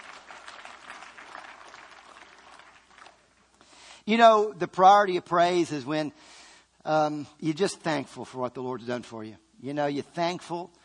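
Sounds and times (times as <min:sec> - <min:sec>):
audience clapping: 0:00.0 - 0:03.6
speech: 0:04.0 - 0:10.8.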